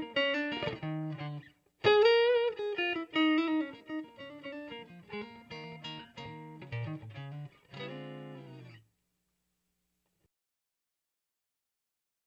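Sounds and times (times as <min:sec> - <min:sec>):
Cajun blues on a Strat electric guitar: 0:00.0 - 0:08.8.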